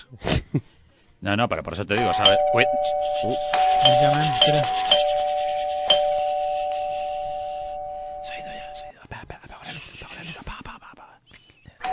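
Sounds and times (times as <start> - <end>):
speech: 0.0 - 5.2
electronic doorbell ringing with chime strikes: 2.0 - 8.9.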